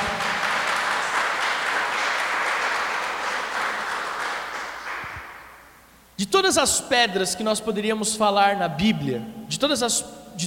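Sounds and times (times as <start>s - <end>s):
audience applause: 0.0s - 5.5s
speech: 6.3s - 10.4s.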